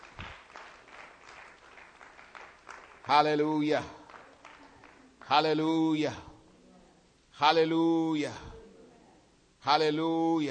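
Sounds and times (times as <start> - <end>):
audience hand clapping: 0.0 - 5.5
speech: 3.1 - 4.0, 5.3 - 6.3, 7.4 - 8.5, 9.6 - 10.4.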